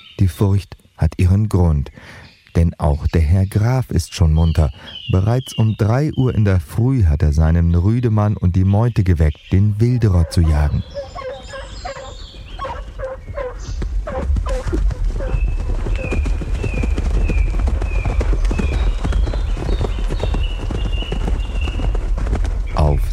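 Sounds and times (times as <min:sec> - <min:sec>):
speech: 0:00.2 - 0:11.2
horse hooves galloping: 0:09.8 - 0:23.1.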